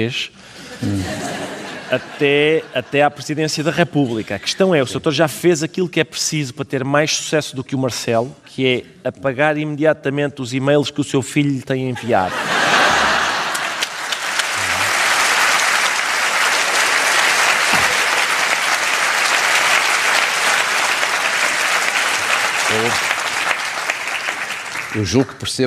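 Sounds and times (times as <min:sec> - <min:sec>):
speech: 0:00.0 - 0:12.6, 0:25.0 - 0:25.6
laughter: 0:00.5 - 0:04.6, 0:11.9 - 0:16.0
studio audience applause: 0:12.4 - 0:25.5.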